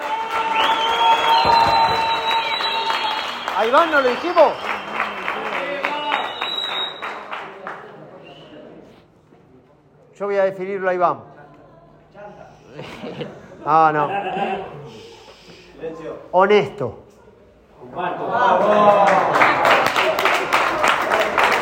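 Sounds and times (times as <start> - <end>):
audience applause: 0.0 - 8.1, 18.6 - 21.5
speech: 3.6 - 4.7, 10.2 - 11.3, 13.0 - 15.0, 15.8 - 17.0, 17.9 - 19.6
laughter: 12.7 - 15.0, 17.8 - 20.4.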